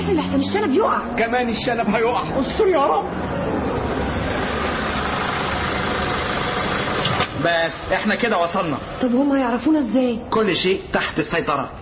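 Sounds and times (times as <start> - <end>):
car engine running while driving: 0.0 - 9.3
speech: 0.1 - 3.6, 7.4 - 11.8.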